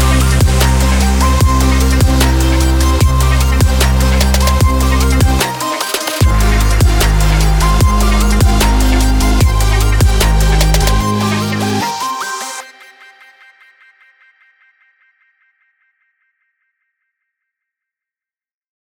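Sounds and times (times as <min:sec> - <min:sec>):
dubstep music: 0:00.0 - 0:13.6.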